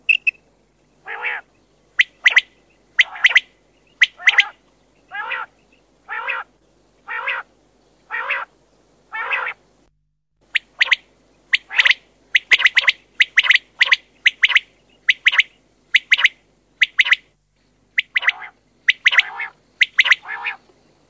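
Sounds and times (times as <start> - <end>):
Common quail calling: 1.0 - 7.5, 8.1 - 8.5, 9.1 - 9.6, 10.5 - 17.3, 18.0 - 20.6.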